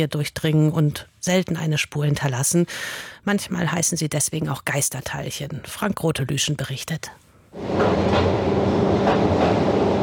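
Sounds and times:
speech: 0.0 - 9.6
small inclined rail car rolling downhill into an underground tunnel: 7.6 - 10.0.

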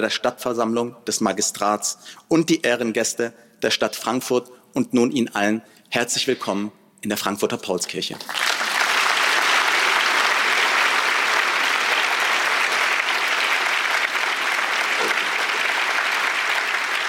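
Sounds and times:
speech: 0.0 - 8.4
audience applause in a reverberant hall: 8.3 - 17.0.

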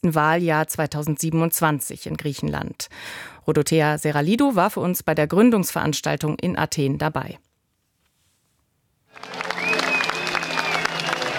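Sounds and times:
speech: 0.0 - 7.5
sustained applause from a large crowd: 9.1 - 11.3.

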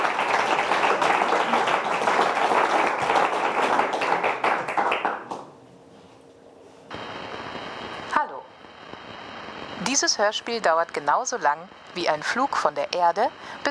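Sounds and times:
audience applause: 0.0 - 5.5
speech: 10.0 - 13.6.

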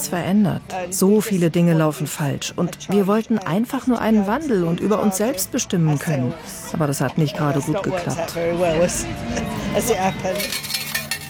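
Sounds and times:
speech: 0.0 - 10.7
coins clinking out of change machine: 9.6 - 11.2.

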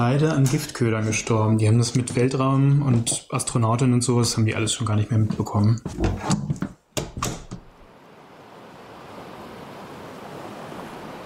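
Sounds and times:
speech: 0.0 - 6.5
ocean waves: 7.8 - 11.2.

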